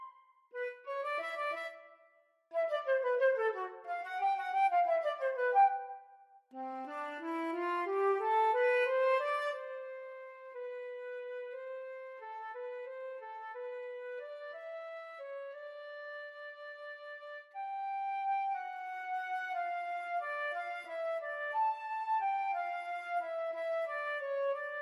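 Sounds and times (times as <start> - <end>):
flute duet playing a waltz: 0.0 - 1.9, 2.6 - 24.7.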